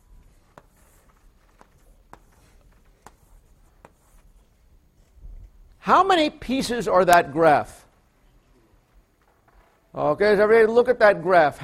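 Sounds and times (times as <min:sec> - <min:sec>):
strokes and taps of a graph being drawn on a board: 0:00.4 - 0:04.3
speech: 0:05.8 - 0:07.8, 0:10.0 - 0:11.6.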